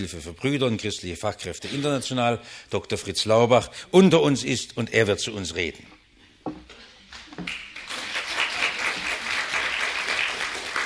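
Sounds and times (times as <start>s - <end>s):
speech: 0.0s - 6.6s
audience applause: 7.4s - 10.8s.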